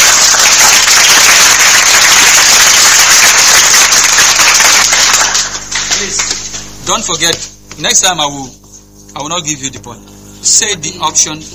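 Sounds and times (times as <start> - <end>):
applause: 0.0 - 6.6
speech: 7.0 - 8.6, 9.2 - 11.5.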